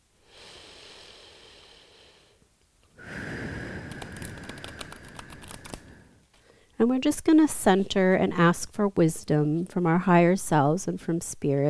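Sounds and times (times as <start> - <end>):
soft breath in: 0.2 - 2.4, 3.0 - 6.8
deck of cards being shuffled: 3.9 - 5.9
speech: 6.8 - 11.6.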